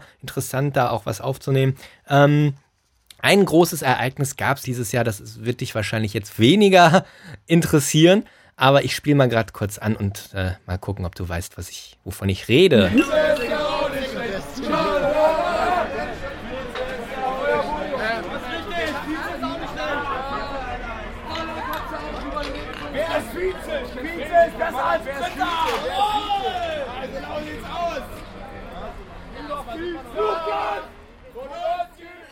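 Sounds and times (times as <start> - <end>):
speech: 0.2 - 2.6, 3.2 - 13.4
laughter: 12.8 - 30.9
roaring football fans at public viewing: 12.8 - 32.2.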